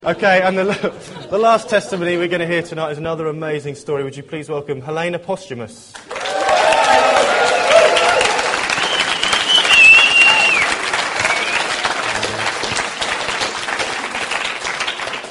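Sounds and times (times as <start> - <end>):
speech: 0.0 - 6.1
large crowd applauding: 6.0 - 15.2
whistle or cheer: 6.2 - 11.8.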